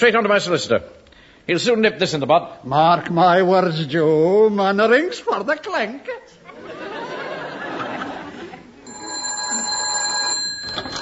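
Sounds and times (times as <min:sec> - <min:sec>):
speech: 0:00.0 - 0:06.4
laughter: 0:06.4 - 0:08.8
telephone bell ringing: 0:08.8 - 0:10.9.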